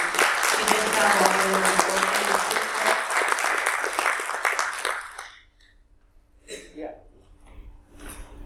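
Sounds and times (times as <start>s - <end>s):
crowd applauding: 0.0s - 5.5s.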